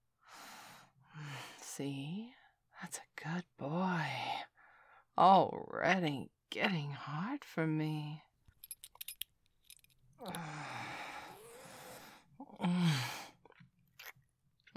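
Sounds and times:
speech: 0:01.8 - 0:04.5, 0:05.2 - 0:08.3, 0:12.6 - 0:13.2
deep nervous breathing: 0:10.2 - 0:12.3.

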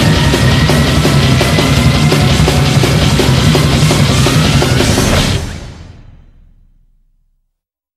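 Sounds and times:
furious drumming: 0:00.0 - 0:06.2.

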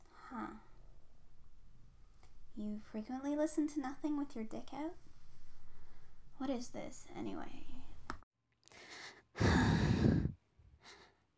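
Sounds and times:
speech: 0:02.6 - 0:05.1, 0:06.4 - 0:07.8
woman breathing into a microphone: 0:08.7 - 0:11.2.

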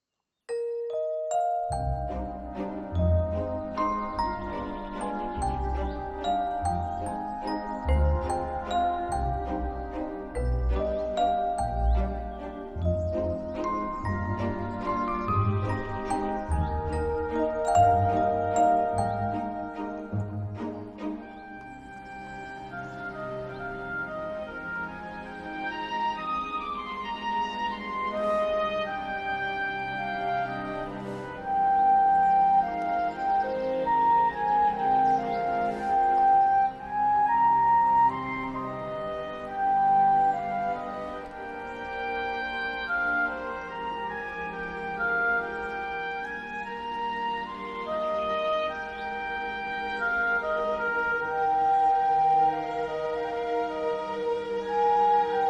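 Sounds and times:
waltz music: 0:00.5 - 0:55.4.

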